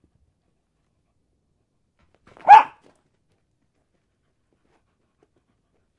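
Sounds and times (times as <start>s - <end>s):
dog barking while playing fetch: 2.4s - 2.8s.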